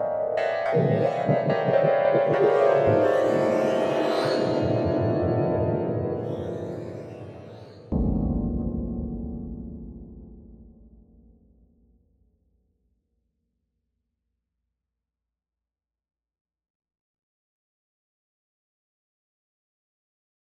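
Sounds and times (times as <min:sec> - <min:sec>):
Padshop 2 synth pad: 0:00.0 - 0:10.9.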